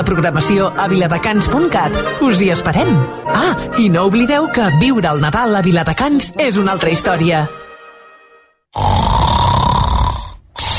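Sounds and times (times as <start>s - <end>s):
speech: 0.0s - 7.6s
person snoring heavily in their sleep: 8.7s - 10.7s.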